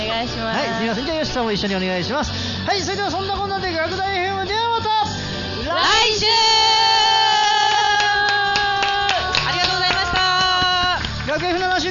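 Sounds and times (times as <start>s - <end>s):
speech: 0.2s - 5.0s, 5.7s - 6.8s
audience applause: 7.1s - 11.8s.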